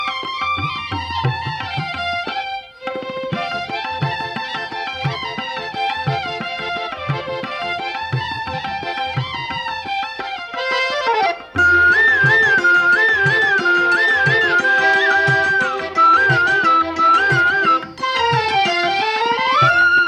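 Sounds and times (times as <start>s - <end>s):
instrumental music: 0.0s - 20.0s.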